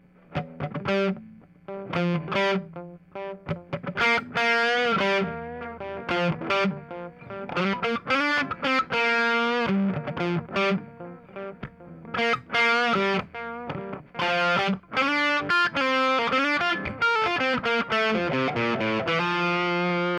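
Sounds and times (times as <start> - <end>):
electric guitar with delay: 0.4 - 20.1.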